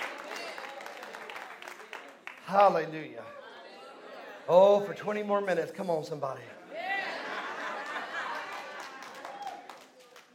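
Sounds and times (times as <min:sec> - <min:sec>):
church congregation clapping in praise: 0:00.0 - 0:03.0, 0:07.7 - 0:10.3
speech: 0:02.5 - 0:03.4, 0:04.5 - 0:06.6
laughter: 0:03.1 - 0:05.0, 0:06.6 - 0:09.7.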